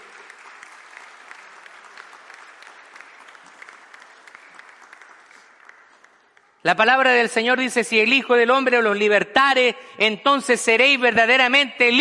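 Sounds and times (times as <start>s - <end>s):
audience applause: 0.0s - 6.6s
speech: 6.6s - 11.9s.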